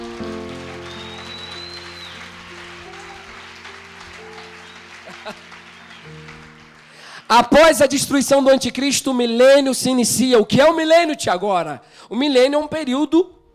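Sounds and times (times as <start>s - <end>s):
audience applause: 0.0s - 7.8s
speech: 5.2s - 6.4s, 7.3s - 13.4s.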